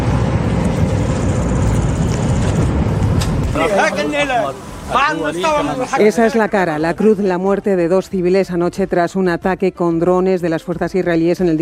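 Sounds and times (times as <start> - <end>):
steady rumble of traffic and engines: 0.0 - 9.2
overlapping voices shouting and calling out: 3.5 - 6.8
speech: 3.6 - 11.6.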